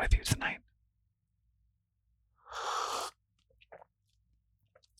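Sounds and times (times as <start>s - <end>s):
person sipping coffee: 2.5s - 3.9s.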